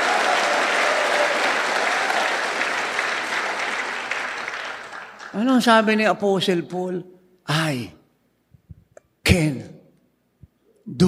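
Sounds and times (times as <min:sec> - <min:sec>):
people clapping softly: 0:00.0 - 0:05.5
speech: 0:05.4 - 0:08.0, 0:09.3 - 0:09.8, 0:10.9 - 0:11.0.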